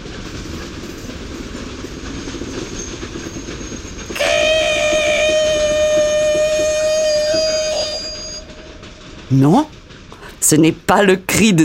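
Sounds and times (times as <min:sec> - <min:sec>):
train rumbling: 0:00.0 - 0:11.6
train brakes squealing as train changes direction: 0:02.4 - 0:10.4
speech: 0:09.3 - 0:09.8, 0:10.5 - 0:11.6.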